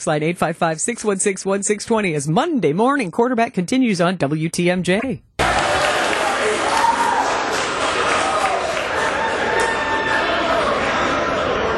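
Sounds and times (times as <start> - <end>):
speech: 0.0 - 5.3
crowd cheering a touchdown at a Buffalo Wild Wings: 5.4 - 11.7.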